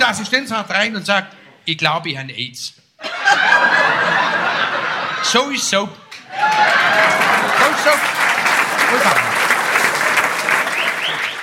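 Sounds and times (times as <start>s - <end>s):
speech: 0.1s - 4.2s, 5.2s - 7.0s, 8.9s - 9.3s
laughter: 3.0s - 11.4s
audience applause: 6.1s - 11.4s.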